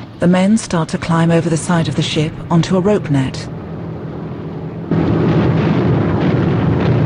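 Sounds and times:
speech: 0.2 - 3.6
film explosions along a coastline backed by tree-covered hills: 3.5 - 7.0.

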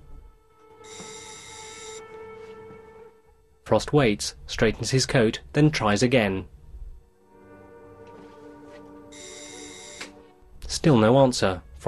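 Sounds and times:
doorbell ringing at a flat door: 0.8 - 2.0, 9.1 - 10.1
speech: 3.7 - 6.6, 10.8 - 11.8.

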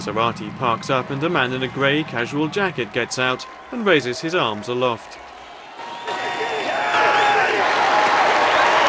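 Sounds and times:
speech: 0.0 - 5.2
large crowd applauding: 0.0 - 8.8.

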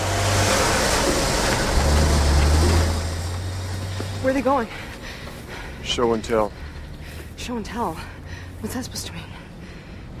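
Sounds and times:
truck driving away: 0.0 - 10.1
speech: 4.4 - 4.8, 5.8 - 6.6, 7.4 - 9.3.

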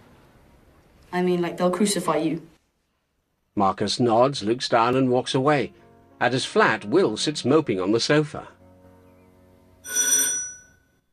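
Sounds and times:
speech: 1.1 - 2.6, 3.6 - 8.6
doorbell ringing: 9.8 - 11.0.

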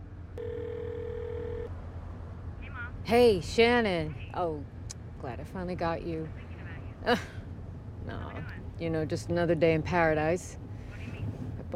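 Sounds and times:
low hum: 0.0 - 11.7
flip phone dial tone: 0.4 - 1.7
speech: 3.1 - 6.4, 7.0 - 7.4, 8.5 - 10.6.

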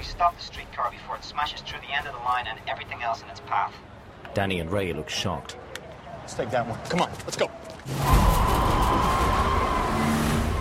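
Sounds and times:
speech: 0.2 - 5.7, 6.3 - 9.5
FBI car speeding away and spinning its tires beneath an overpass: 9.0 - 10.6.

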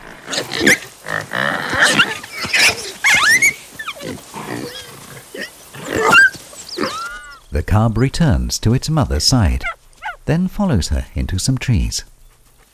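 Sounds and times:
small wild pig grunting and squealing to warn off a lion cub: 0.0 - 7.5, 9.1 - 10.3
speech: 0.6 - 0.9, 7.8 - 9.7, 10.3 - 12.1.

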